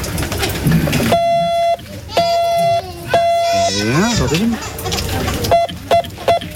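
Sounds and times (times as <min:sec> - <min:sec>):
Morse code beeps from a small device: 0:01.1 - 0:03.6
murmured voices: 0:02.8 - 0:06.5
speech: 0:03.8 - 0:05.3.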